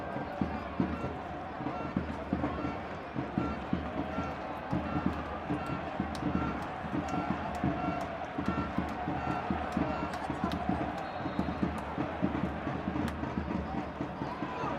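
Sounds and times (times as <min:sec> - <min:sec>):
huge football crowd cheering in Granada Spain: 0:00.0 - 0:14.7.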